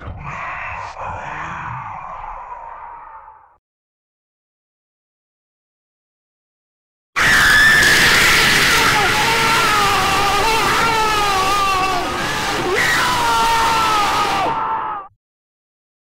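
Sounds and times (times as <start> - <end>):
creepy horror whisper: 0.0 - 3.6, 7.9 - 14.6.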